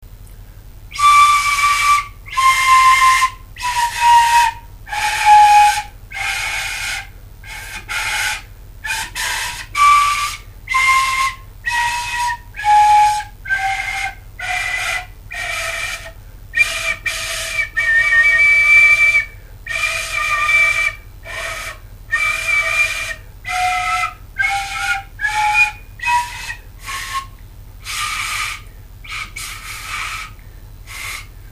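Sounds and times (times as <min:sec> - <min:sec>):
flute: 0:00.9 - 0:31.5.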